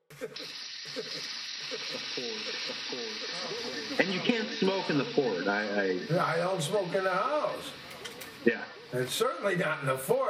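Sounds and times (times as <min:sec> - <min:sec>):
laughter: 0:00.0 - 0:05.7
warm coals crackling and hissing in a fire: 0:00.2 - 0:10.2
speech: 0:02.2 - 0:07.8, 0:08.4 - 0:10.2.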